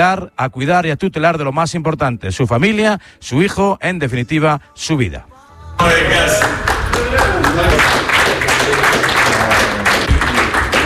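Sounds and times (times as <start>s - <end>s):
speech: 0.0s - 8.2s
teammates applauding: 5.8s - 10.8s.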